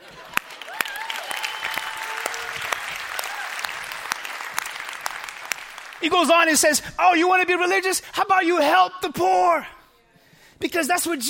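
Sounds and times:
audience applause: 0.0 - 6.3
cheering whoops: 0.6 - 4.2
speech: 6.0 - 9.8, 10.6 - 11.2.

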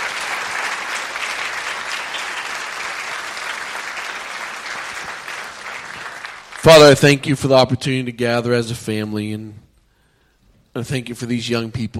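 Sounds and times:
audience applause: 0.0 - 7.1
speech: 6.7 - 9.6, 10.8 - 11.9.

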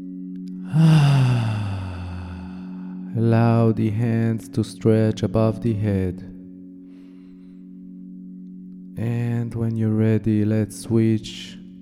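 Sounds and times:
low steady drone: 0.0 - 4.3
deep inhale during a meditation practice: 0.6 - 3.1, 6.9 - 7.8
speech: 0.7 - 1.3, 3.2 - 6.3, 9.0 - 11.6.

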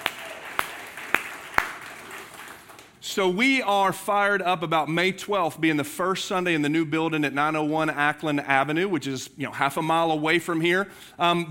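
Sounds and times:
slow evenly spaced hand claps: 0.0 - 3.0
speech: 3.2 - 11.4.

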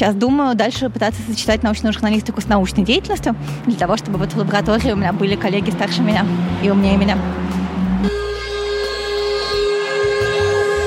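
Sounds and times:
speech: 0.0 - 8.3
fire engine low engine rumble: 0.0 - 10.8
fire engine siren passing on a call: 7.4 - 10.8.

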